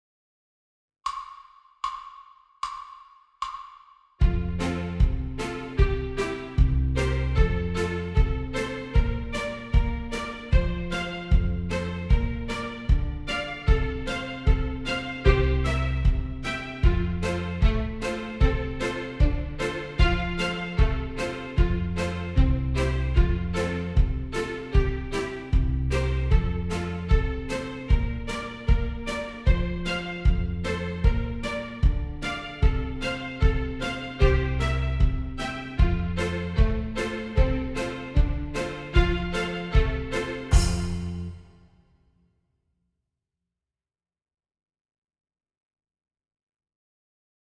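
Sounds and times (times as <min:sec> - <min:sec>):
horns in fifths: 0:04.2 - 0:41.4.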